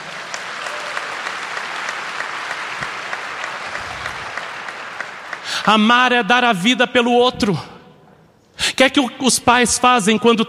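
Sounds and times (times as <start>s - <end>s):
audience applauding: 0.0s - 5.9s
speech: 5.6s - 7.7s, 8.8s - 10.4s.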